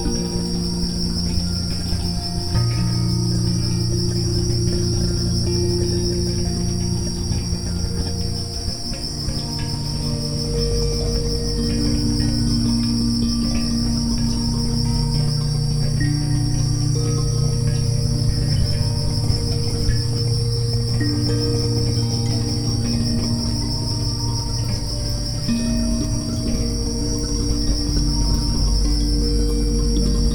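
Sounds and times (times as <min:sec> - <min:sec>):
crickets chirping: 0:00.0 - 0:30.3
low droning tones: 0:00.0 - 0:30.3
soft held musical notes: 0:00.0 - 0:30.3.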